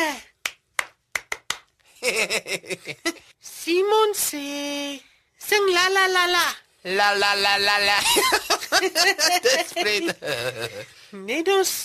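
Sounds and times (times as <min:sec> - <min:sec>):
hand clapping: 0:00.4 - 0:01.9
speech: 0:02.1 - 0:11.8.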